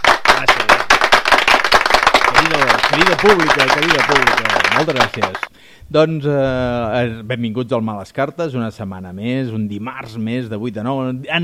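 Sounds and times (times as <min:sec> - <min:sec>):
crowd clapping: 0:00.0 - 0:05.5
speech: 0:03.0 - 0:11.4.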